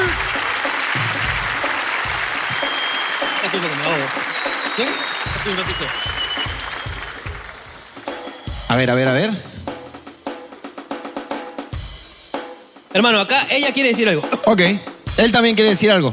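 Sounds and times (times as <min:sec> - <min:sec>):
audience applause: 0:00.0 - 0:08.4
speech: 0:03.6 - 0:06.2, 0:08.7 - 0:09.5, 0:13.0 - 0:16.1.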